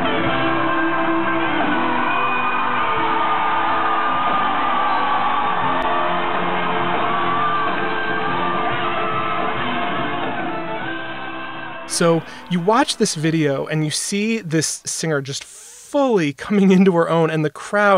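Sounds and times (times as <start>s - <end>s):
concert crowd cheering and screaming: 0.2s - 13.4s
speech: 12.0s - 17.9s.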